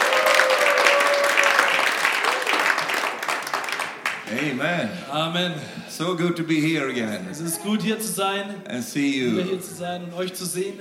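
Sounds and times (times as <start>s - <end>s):
congregation applause at a church gathering: 0.0s - 4.9s
speech: 4.4s - 10.7s.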